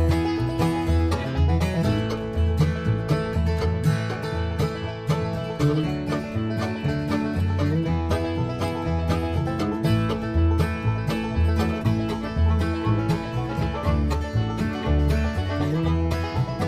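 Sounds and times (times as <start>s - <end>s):
banjo: 0.0s - 16.6s.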